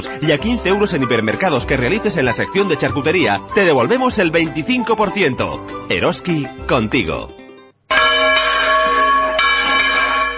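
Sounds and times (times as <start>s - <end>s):
speech: 0.0s - 8.0s
church bells ringing: 7.9s - 10.3s.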